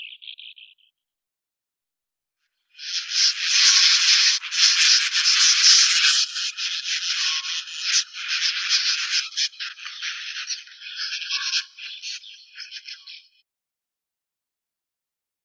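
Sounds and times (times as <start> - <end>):
sand martin Riparia riparia calling: 2.8 - 13.2.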